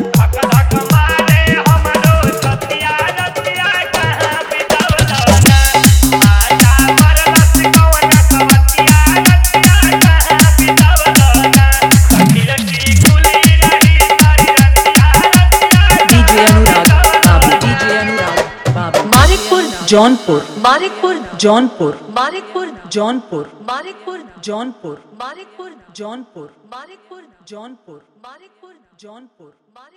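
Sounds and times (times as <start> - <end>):
dholak with bass mix: 0.0 - 21.0.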